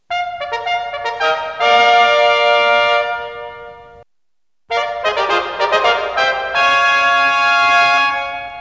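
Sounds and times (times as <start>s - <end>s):
fanfare: 0.1s - 4.0s, 4.7s - 8.6s.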